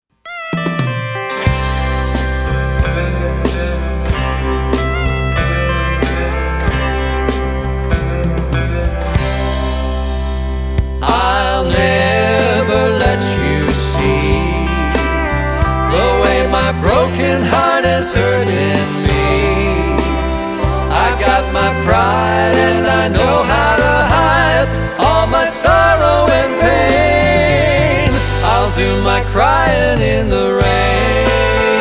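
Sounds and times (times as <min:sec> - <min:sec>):
country music: 0:00.3 - 0:31.8.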